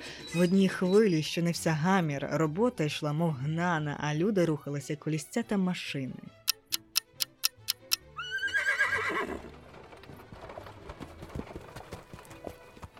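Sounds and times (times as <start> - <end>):
speech: 0.3 - 6.4
horse-drawn carriage hooves clip-clopping: 7.4 - 12.9
horse neighing: 8.2 - 9.6.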